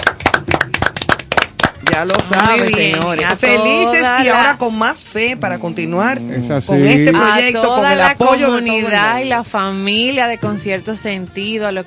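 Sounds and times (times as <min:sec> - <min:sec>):
applause: 0:00.0 - 0:03.6
speech: 0:02.0 - 0:11.8.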